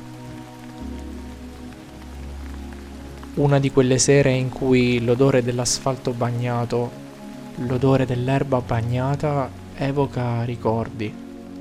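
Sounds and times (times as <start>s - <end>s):
rain running on rooftops: 0.0s - 11.5s
speech: 3.4s - 7.0s, 7.6s - 11.2s.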